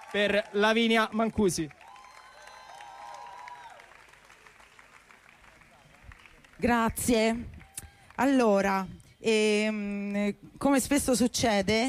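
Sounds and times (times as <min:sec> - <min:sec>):
audience cheering: 0:00.0 - 0:06.2
audience applause: 0:00.0 - 0:08.2
speech: 0:00.1 - 0:01.8, 0:06.6 - 0:07.6, 0:08.2 - 0:11.8.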